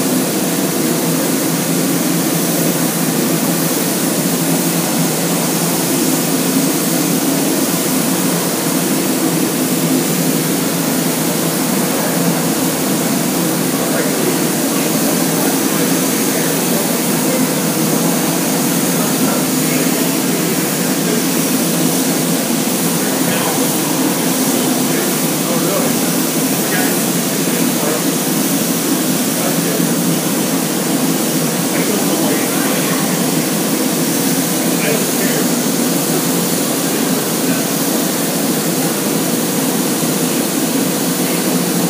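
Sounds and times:
steam cleaner at the Seattle Gum Wall at Pike Place Market: 0:00.0 - 0:41.8
faint hum: 0:05.0 - 0:36.2
voices: 0:13.7 - 0:30.3.

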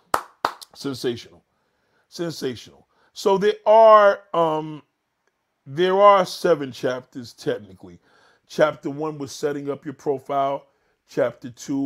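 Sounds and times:
applause: 0:00.0 - 0:00.8
speech: 0:00.8 - 0:01.5, 0:02.1 - 0:04.9, 0:05.6 - 0:11.8.

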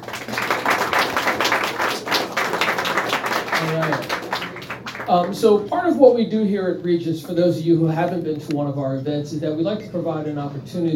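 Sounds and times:
audience applause: 0:00.0 - 0:05.4
speech: 0:05.1 - 0:10.9.

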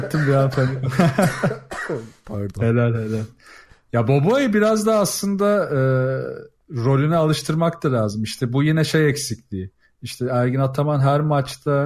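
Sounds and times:
laughter: 0:00.0 - 0:01.7
speech: 0:00.0 - 0:11.8
cough: 0:00.2 - 0:02.2.

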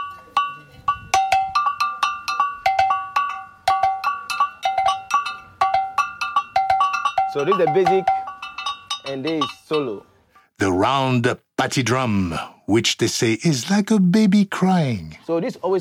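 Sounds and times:
two bells played in ensemble: 0:00.0 - 0:09.8
speech: 0:07.4 - 0:08.2, 0:09.0 - 0:15.7.

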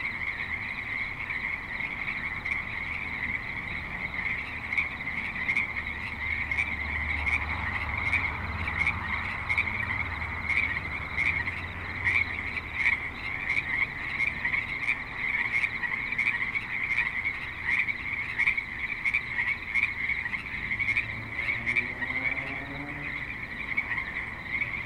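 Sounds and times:
frogs croaking in a dense chorus: 0:00.0 - 0:24.8
low traffic rumble: 0:00.0 - 0:24.8
vehicle passing: 0:06.1 - 0:13.8, 0:20.2 - 0:24.8.

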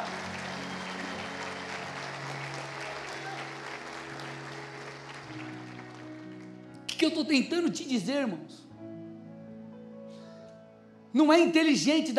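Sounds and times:
audience applauding: 0:00.0 - 0:07.0
speech: 0:07.0 - 0:08.7, 0:11.1 - 0:12.1.

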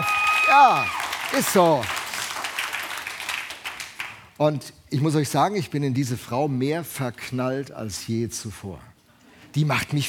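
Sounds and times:
audience applause: 0:00.0 - 0:04.2
speech: 0:00.6 - 0:02.0, 0:04.4 - 0:08.9, 0:09.5 - 0:10.0.

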